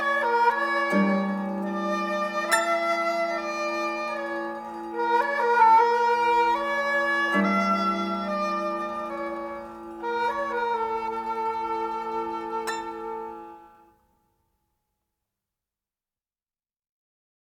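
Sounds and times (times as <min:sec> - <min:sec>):
two slow Turkish folk songs: 0:00.0 - 0:13.6.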